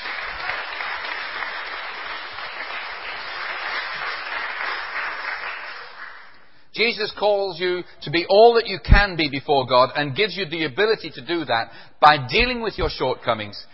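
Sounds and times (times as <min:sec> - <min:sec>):
audience applause: 0:00.0 - 0:06.4
speech: 0:06.8 - 0:13.7.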